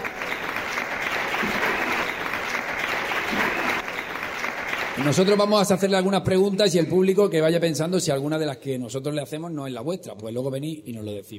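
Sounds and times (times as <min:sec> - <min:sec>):
audience applause: 0:00.0 - 0:06.2
speech: 0:05.0 - 0:11.3.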